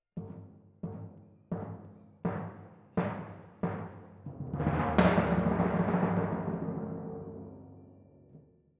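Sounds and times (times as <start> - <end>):
timpani in F: 0.2 - 8.5.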